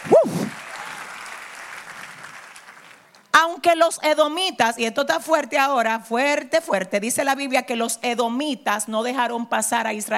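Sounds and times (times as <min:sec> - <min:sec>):
audience applause: 0:00.0 - 0:03.1
speech: 0:03.4 - 0:10.1.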